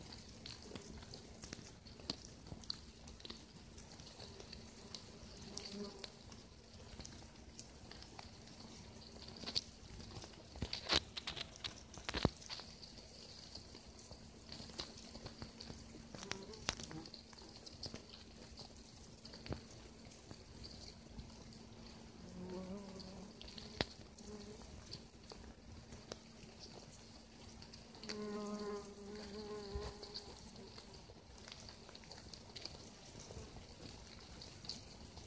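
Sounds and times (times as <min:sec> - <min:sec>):
ants in an anthill in a forest: 0:00.0 - 0:35.2.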